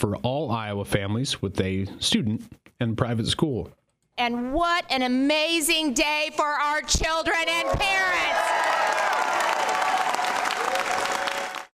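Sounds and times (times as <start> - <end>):
speech: 0.0 - 8.7
crowd applauding: 7.7 - 11.7.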